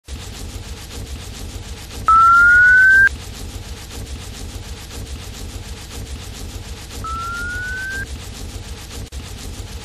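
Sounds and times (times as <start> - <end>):
sonar ping: 2.1 - 3.1, 7.0 - 8.0.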